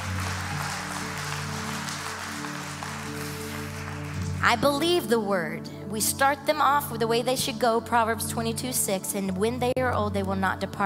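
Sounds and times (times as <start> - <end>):
audience applause: 0.0 - 4.4
speech: 4.4 - 10.8.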